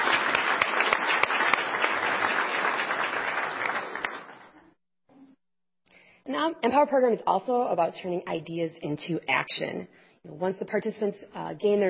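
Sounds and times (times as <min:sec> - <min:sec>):
audience applause: 0:00.0 - 0:04.5
speech: 0:06.5 - 0:11.8.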